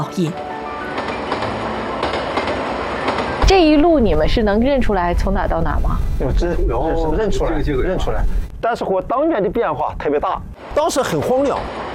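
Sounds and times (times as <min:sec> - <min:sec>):
speech: 0:00.0 - 0:00.5, 0:03.5 - 0:11.8
train pulling out of Tongliao station in Inner Mongolia: 0:00.6 - 0:08.5
train wheels clickety-clack on rails: 0:00.8 - 0:04.8.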